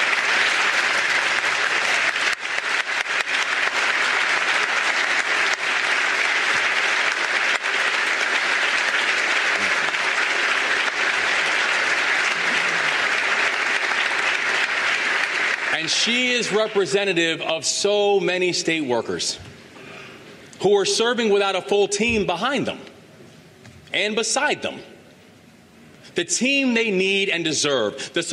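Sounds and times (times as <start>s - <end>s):
audience applause: 0.0s - 17.2s
speech: 15.9s - 19.5s, 20.6s - 22.9s, 24.0s - 24.9s, 26.2s - 28.3s.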